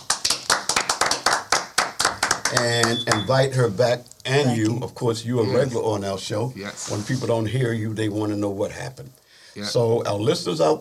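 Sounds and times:
small group hand clapping in a room: 0.0 - 3.3
speech: 2.5 - 10.7.

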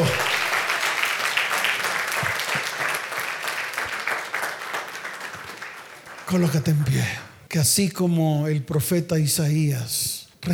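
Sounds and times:
audience applauding: 0.0 - 7.4
speech: 6.3 - 10.5.

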